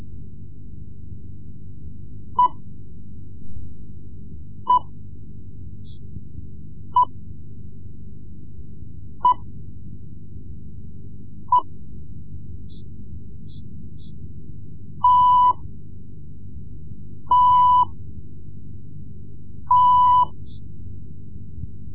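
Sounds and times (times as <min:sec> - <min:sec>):
Morse code lessons: 0:15.0 - 0:15.6, 0:17.3 - 0:17.9, 0:19.7 - 0:20.4.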